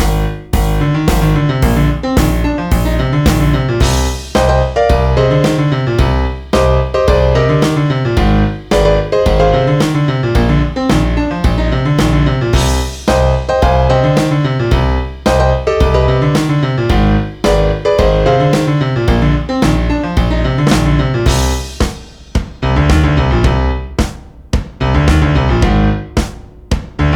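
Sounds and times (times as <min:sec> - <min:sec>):
rock piano playing: 0:00.0 - 0:24.1, 0:24.8 - 0:27.1.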